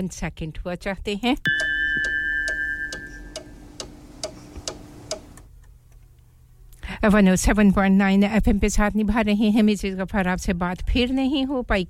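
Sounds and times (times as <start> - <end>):
speech: 0.0 - 1.7, 7.0 - 11.8
radio studio clock ticking during an on-air time check: 1.5 - 5.5.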